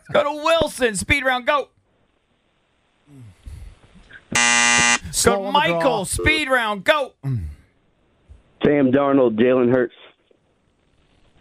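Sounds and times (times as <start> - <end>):
speech: 0.1 - 1.8, 5.1 - 7.5, 8.6 - 10.1
game show buzzer: 4.3 - 5.3.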